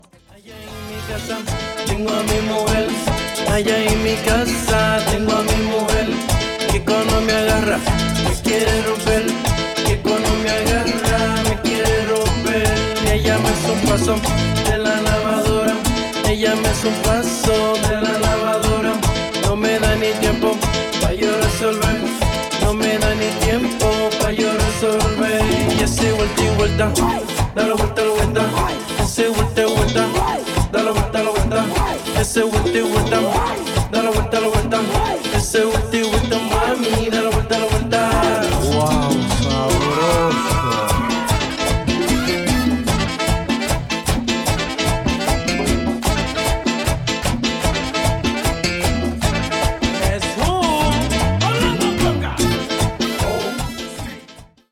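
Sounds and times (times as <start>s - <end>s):
latin music: 0.0s - 54.7s.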